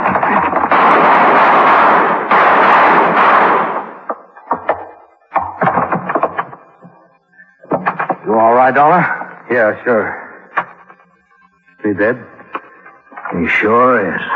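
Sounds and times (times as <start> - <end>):
gunshot blast: 0.0 - 4.8
door lock cracking and thudding as it gives way: 0.0 - 6.6
speech: 8.7 - 10.2, 11.9 - 12.3, 13.4 - 14.3.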